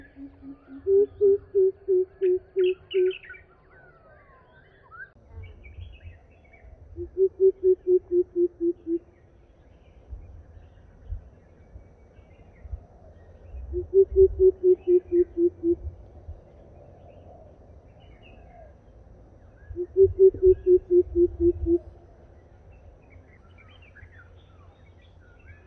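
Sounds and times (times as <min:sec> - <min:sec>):
Greater Coucal calling: 0:00.0 - 0:03.4, 0:07.0 - 0:09.0, 0:13.8 - 0:15.9, 0:19.8 - 0:21.9.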